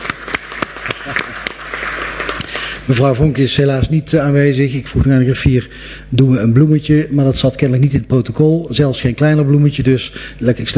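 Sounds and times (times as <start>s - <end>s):
small group clapping at a council meeting: 0.0s - 2.8s
speech: 2.9s - 10.7s.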